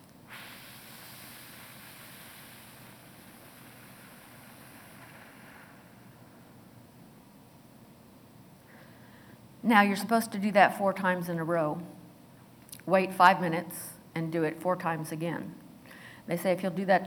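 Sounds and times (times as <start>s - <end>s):
whooshing exhale through the mouth: 0.3s - 6.6s
speech: 9.7s - 12.0s, 12.8s - 15.6s, 16.3s - 17.0s.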